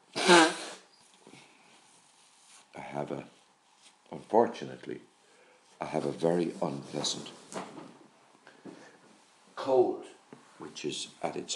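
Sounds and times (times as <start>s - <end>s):
person sneezing: 0.0s - 0.9s
speech: 3.0s - 3.4s, 4.1s - 5.1s, 5.8s - 7.6s, 9.7s - 11.5s.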